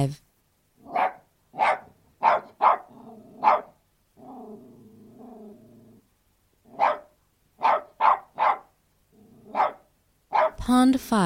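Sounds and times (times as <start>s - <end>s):
speech: 0.0s - 0.2s, 10.7s - 11.2s
Australian terrier barking: 0.8s - 4.5s, 6.7s - 8.8s, 9.4s - 10.6s
Australian terrier low rumbling growls: 0.8s - 10.5s.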